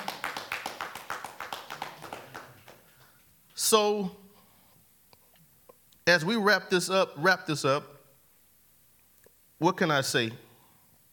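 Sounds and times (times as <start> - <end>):
audience clapping hands: 0.0 - 3.3
speech: 3.7 - 4.2, 6.1 - 8.0, 9.6 - 10.4.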